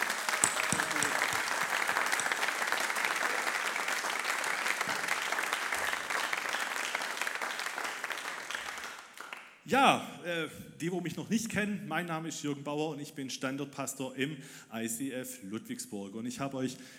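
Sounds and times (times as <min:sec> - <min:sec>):
sustained audience applause: 0:00.0 - 0:09.5
speech: 0:09.7 - 0:16.9.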